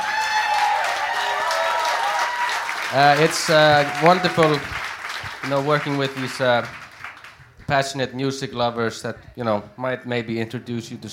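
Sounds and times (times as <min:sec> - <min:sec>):
crowd applauding: 0:00.0 - 0:07.7
speech: 0:02.9 - 0:04.8, 0:05.4 - 0:06.8, 0:07.7 - 0:11.1.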